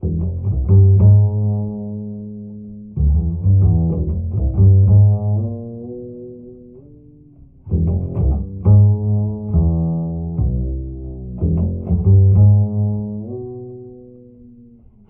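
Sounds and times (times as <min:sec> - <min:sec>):
bass loops: 0:00.0 - 0:02.2, 0:02.8 - 0:06.3, 0:07.7 - 0:13.8.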